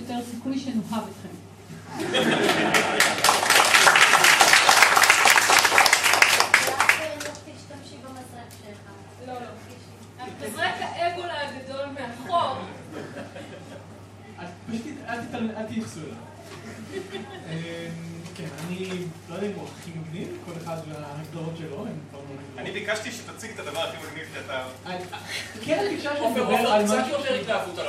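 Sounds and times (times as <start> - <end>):
speech: 0.1 - 3.1, 19.9 - 27.8
laughter: 1.8 - 4.6, 12.6 - 15.5, 16.5 - 17.8
live audience applause: 2.1 - 7.4.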